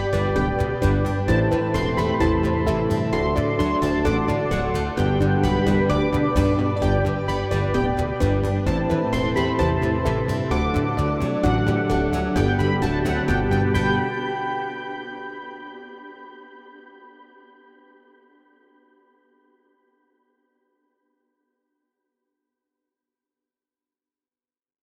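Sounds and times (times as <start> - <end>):
instrumental music: 0.0 - 15.3.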